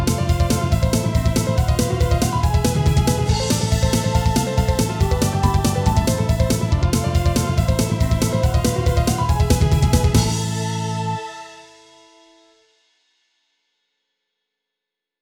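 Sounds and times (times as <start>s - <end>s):
sweep arpeggio passage study backing track: 0.0s - 11.2s.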